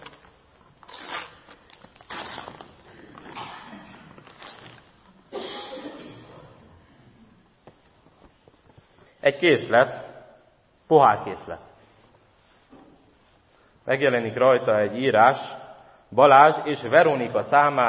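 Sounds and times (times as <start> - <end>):
wrapping paper tearing on a gift: 0.0 - 2.9, 4.2 - 5.0
speech: 9.2 - 10.0, 10.9 - 11.7, 13.9 - 17.8.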